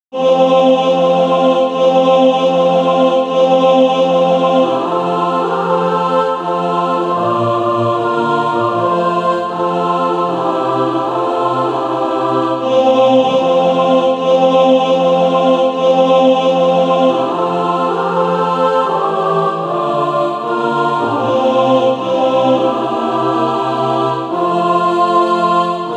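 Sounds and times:
mixed SATB choir practice music: 0.1 - 25.9.

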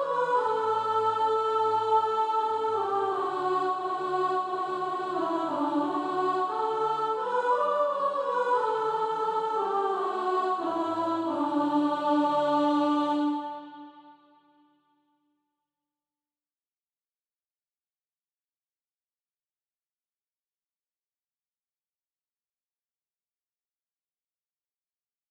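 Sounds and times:
soprano singing practice music: 0.0 - 14.2.

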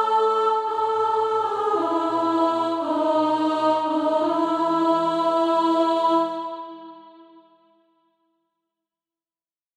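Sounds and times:
alto voice singing SATB practice music: 0.0 - 7.5.

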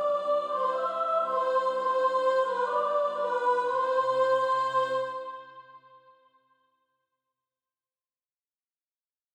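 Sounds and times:
soprano singing: 0.0 - 5.6.

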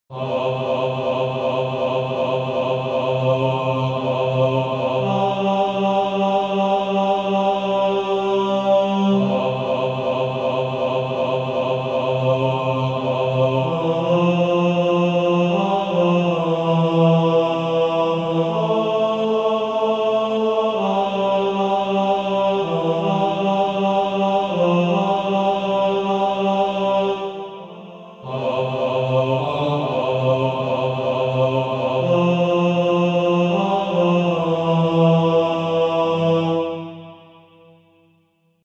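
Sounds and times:
male choir singing bass: 0.1 - 37.4.

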